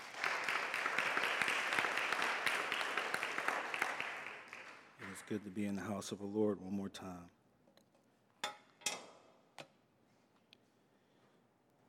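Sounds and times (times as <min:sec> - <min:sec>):
audience hand clapping: 0:00.0 - 0:05.5
speech: 0:05.3 - 0:07.4.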